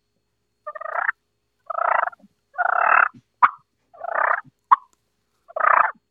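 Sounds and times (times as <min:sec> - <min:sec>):
voice imitating a turkey purr by gargling: 0:00.7 - 0:04.9, 0:05.5 - 0:06.0.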